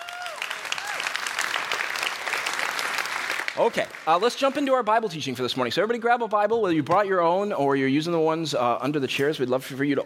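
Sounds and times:
audience applauding: 0.0s - 4.9s
speech: 3.6s - 10.0s.

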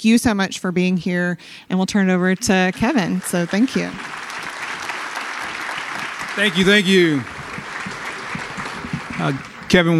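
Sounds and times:
speech: 0.0s - 4.2s, 6.4s - 7.4s, 9.2s - 9.9s
crowd applause: 2.5s - 9.9s.

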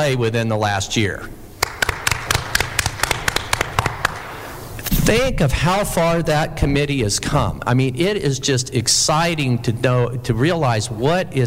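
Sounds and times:
speech: 0.0s - 1.4s, 5.1s - 11.4s
applause: 1.6s - 4.3s.

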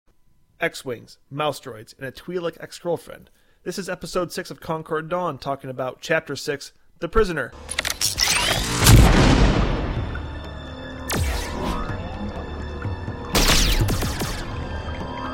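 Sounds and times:
speech: 0.6s - 8.2s
royalty-free laser blast sound effects: 7.6s - 10.4s, 11.1s - 12.1s, 13.3s - 14.7s
booming rumble: 8.8s - 15.2s.

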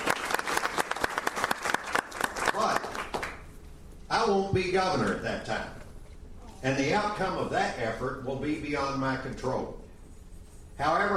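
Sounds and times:
audience round of applause: 0.0s - 3.4s
speech: 4.4s - 5.8s, 6.6s - 9.8s, 10.8s - 11.1s.

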